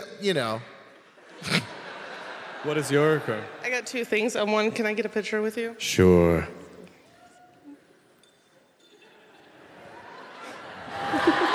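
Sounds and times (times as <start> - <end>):
speech: 0.2 - 0.7, 2.6 - 6.6
laughter: 1.1 - 3.6, 9.0 - 11.5
wind chimes ringing: 8.2 - 9.6.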